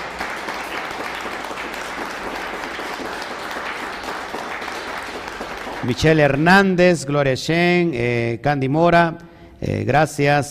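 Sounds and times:
audience applause: 0.0 - 6.4
speech: 5.8 - 10.5.

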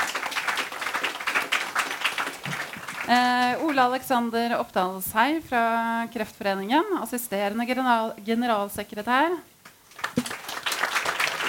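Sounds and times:
audience applause: 0.0 - 3.6, 9.9 - 11.4
speech: 3.1 - 9.5.

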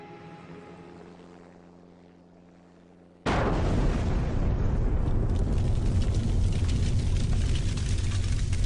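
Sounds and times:
huge bomb explosion shaking a house: 3.3 - 8.5.

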